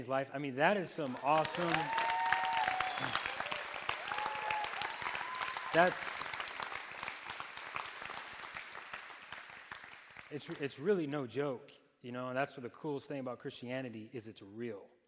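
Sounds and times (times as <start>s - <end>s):
speech: 0.0s - 2.0s, 5.7s - 6.2s, 10.3s - 14.9s
audience applause: 1.0s - 10.6s.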